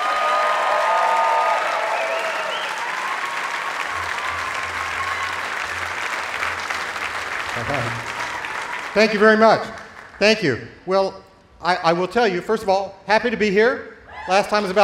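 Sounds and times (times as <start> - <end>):
festival crowd applauding a performer at Newport Folk Festival: 0.0 - 10.3
speech: 7.7 - 8.0, 9.0 - 14.8.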